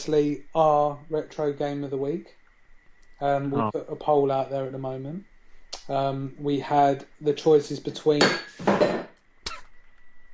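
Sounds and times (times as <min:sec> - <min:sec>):
speech: 0:00.0 - 0:02.4, 0:03.2 - 0:05.3, 0:05.9 - 0:09.0
faint steady high whine: 0:00.0 - 0:10.3
cup knocked over onto lap: 0:08.2 - 0:09.1.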